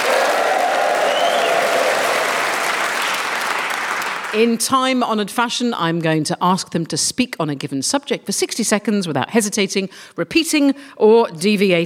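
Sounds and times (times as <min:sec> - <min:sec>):
audience whooping: 0:00.0 - 0:04.2
speech: 0:04.4 - 0:11.8.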